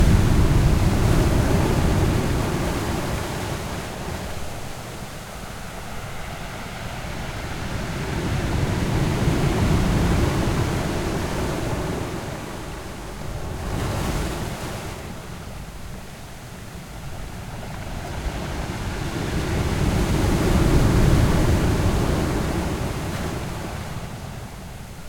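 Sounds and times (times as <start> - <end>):
ocean waves on medium to large rocks on a shore: 0.0 - 25.0.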